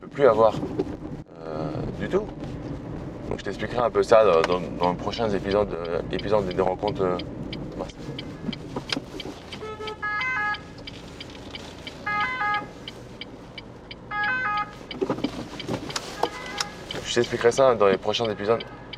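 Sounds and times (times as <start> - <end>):
car engine and road rumble: 0.0 - 18.9
speech: 0.2 - 0.9, 2.0 - 2.6, 3.3 - 8.3, 17.2 - 18.8
two-tone ambulance siren passing: 9.5 - 10.8, 11.8 - 12.9, 14.1 - 14.9, 16.0 - 17.0.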